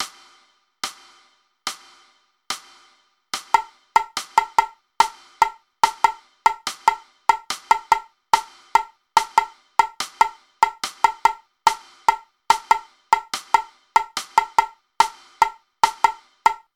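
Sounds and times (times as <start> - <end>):
slow tamborim drumming: 3.6 - 16.6.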